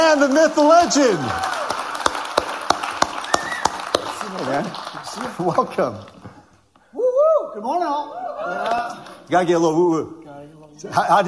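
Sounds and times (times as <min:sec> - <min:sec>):
church audience applause: 0:00.0 - 0:06.5
speech: 0:00.1 - 0:01.6, 0:04.4 - 0:06.2, 0:07.6 - 0:11.2.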